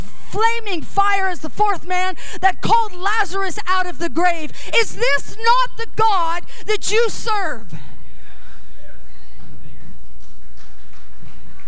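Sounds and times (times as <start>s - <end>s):
speech: 0.3s - 7.9s
crowd clapping rhythmically: 9.4s - 11.6s.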